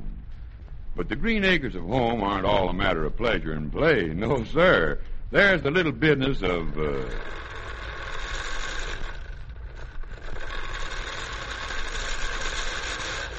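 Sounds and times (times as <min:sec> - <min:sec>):
speech: 0:01.0 - 0:07.4
lawnmower engine running: 0:06.4 - 0:13.3.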